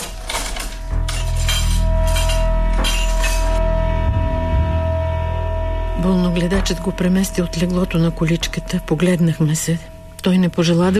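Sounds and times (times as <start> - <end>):
breakfast dishes and cutlery being cleared away: 0.0 - 3.6
low hum: 0.9 - 10.9
speech: 6.0 - 10.9.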